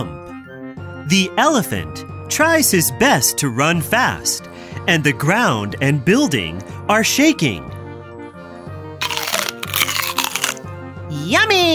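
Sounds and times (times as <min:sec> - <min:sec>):
speech: 0:01.1 - 0:07.8, 0:11.3 - 0:11.7
crunchy bite of a carrot: 0:09.0 - 0:10.7.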